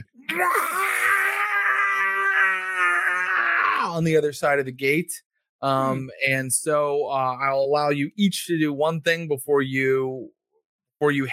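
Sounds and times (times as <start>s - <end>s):
frenzied kindred screaming: 0.3s - 4.0s
speech: 0.4s - 0.9s, 3.9s - 10.4s, 11.0s - 11.3s.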